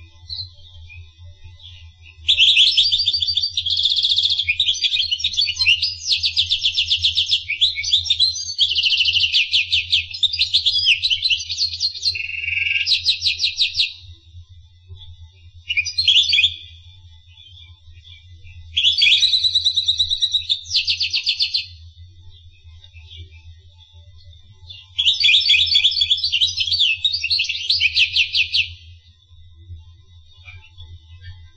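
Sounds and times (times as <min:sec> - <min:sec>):
finch singing: 0:01.6 - 0:14.0, 0:18.8 - 0:21.8, 0:24.7 - 0:28.8.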